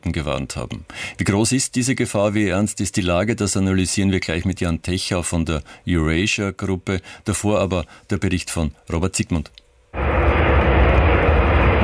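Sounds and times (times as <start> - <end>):
speech: 0.0 - 9.6
US military aircraft landing on a runway in Riga, Latvia: 10.0 - 11.8.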